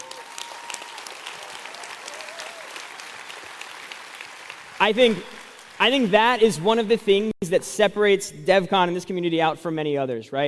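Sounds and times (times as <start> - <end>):
audience round of applause: 0.0 - 6.6
speech: 4.8 - 10.4.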